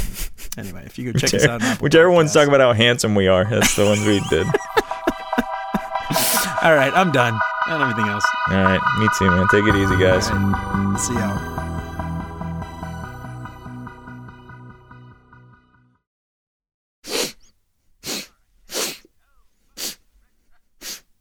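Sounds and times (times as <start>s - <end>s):
nose sniffing: 0.0s - 0.6s, 17.0s - 20.1s, 20.8s - 21.1s
speech: 0.6s - 5.0s, 6.6s - 11.6s
laughter: 3.6s - 6.0s.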